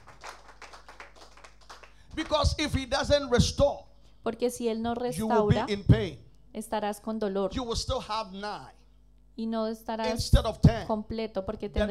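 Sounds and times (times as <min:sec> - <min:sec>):
audience clapping in rhythm: 0:00.0 - 0:03.2
low constant hum: 0:00.0 - 0:11.8
speech: 0:02.2 - 0:08.8, 0:09.4 - 0:11.8.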